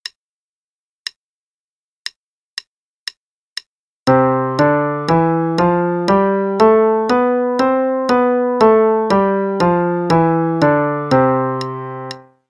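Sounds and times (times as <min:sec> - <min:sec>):
C major scale at 120 bpm: 0:04.1 - 0:12.4.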